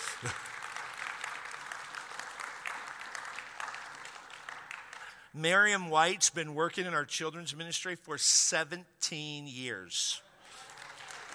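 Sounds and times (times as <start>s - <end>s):
crowd clapping: 0.0s - 5.3s, 10.4s - 11.3s
speech: 0.2s - 0.4s, 5.4s - 10.3s.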